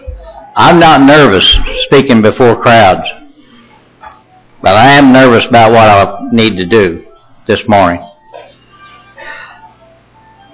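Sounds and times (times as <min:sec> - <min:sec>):
speech: 0:00.6 - 0:03.2, 0:04.6 - 0:08.1
mobile phone ringtone: 0:08.0 - 0:10.5.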